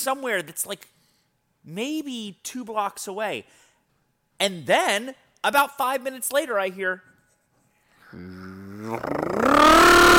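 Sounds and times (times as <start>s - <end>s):
speech: 0.0s - 1.0s, 1.6s - 3.6s, 4.4s - 7.1s, 8.1s - 10.1s
voice imitating a motorcycle driving past: 8.2s - 10.1s.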